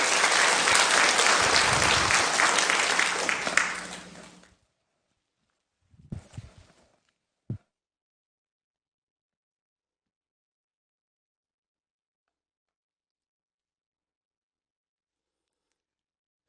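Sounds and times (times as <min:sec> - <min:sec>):
church congregation applauding to welcome a preacher: 0:00.0 - 0:04.5.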